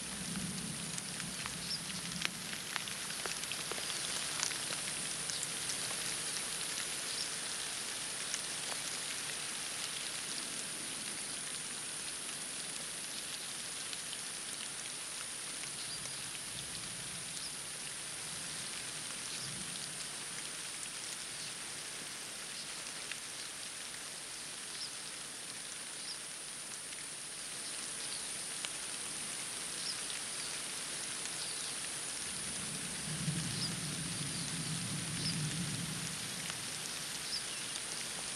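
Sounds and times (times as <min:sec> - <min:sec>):
rain in a forest: 0:00.0 - 0:38.3.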